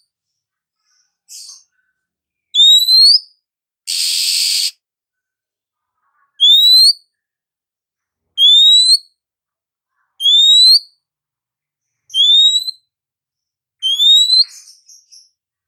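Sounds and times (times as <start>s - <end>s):
female Oriental magpie-robin calling with rising whistled slurs: 2.6s - 3.3s, 3.9s - 4.7s, 6.4s - 7.0s, 8.4s - 9.1s, 10.2s - 10.9s, 12.1s - 12.8s, 13.8s - 15.2s.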